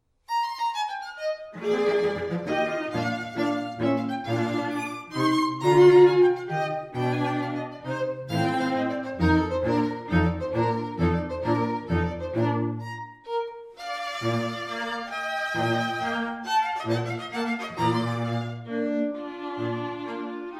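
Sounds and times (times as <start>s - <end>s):
musical trio: 0.5s - 20.5s.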